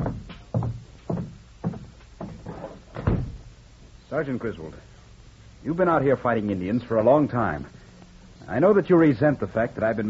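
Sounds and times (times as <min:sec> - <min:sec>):
door closing: 0:00.0 - 0:03.5
speech: 0:04.1 - 0:04.9, 0:05.6 - 0:07.8, 0:08.5 - 0:10.0.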